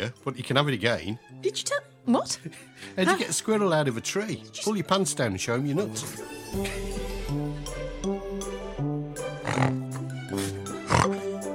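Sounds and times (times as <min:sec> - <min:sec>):
speech: 0:00.0 - 0:07.4
music: 0:00.0 - 0:11.5
person imitating a warthog with nasal snorts and grunts: 0:09.2 - 0:11.4.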